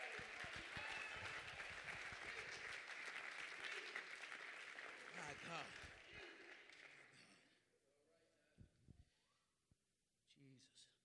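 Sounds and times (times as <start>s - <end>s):
audience clapping hands: 0.0s - 7.3s
speech: 5.3s - 5.9s.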